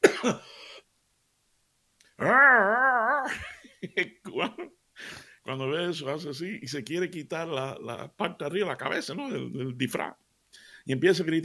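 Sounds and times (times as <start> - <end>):
speech: 0.2 - 0.4, 5.6 - 10.2, 10.9 - 11.4
person imitating a lion's roar: 2.2 - 3.4.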